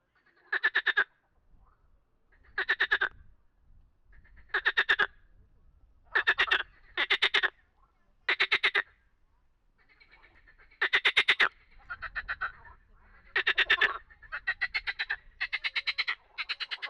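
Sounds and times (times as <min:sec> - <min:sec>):
frog croaking in pulsed rattling trains: 0:00.2 - 0:01.2, 0:02.3 - 0:03.2, 0:04.2 - 0:05.2, 0:06.1 - 0:07.6, 0:08.3 - 0:09.0, 0:09.8 - 0:16.8.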